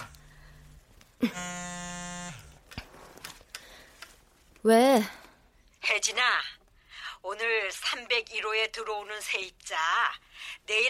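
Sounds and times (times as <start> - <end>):
speech: 1.2 - 1.7, 4.6 - 5.2, 7.2 - 10.8
phone buzzing with incoming call: 1.2 - 2.7.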